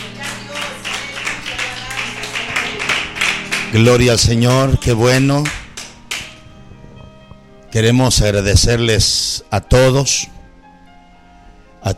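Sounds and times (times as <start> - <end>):
audience clapping hands: 0.0 - 6.5
speech: 3.7 - 5.6, 7.8 - 10.4.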